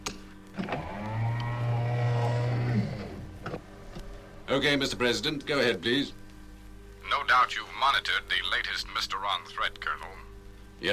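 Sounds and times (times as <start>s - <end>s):
sound doors closing: 0.6s - 4.0s
speech: 4.5s - 6.2s, 7.3s - 10.0s, 10.8s - 10.9s.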